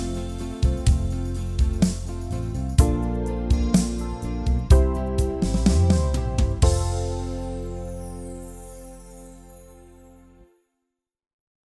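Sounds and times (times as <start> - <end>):
slow beat: 0.0 - 7.4.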